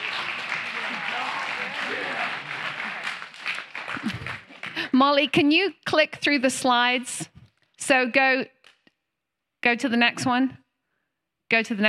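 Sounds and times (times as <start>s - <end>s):
audience clapping: 0.0s - 5.3s
speech: 5.0s - 7.3s, 7.9s - 8.6s, 9.6s - 10.6s, 11.5s - 11.8s.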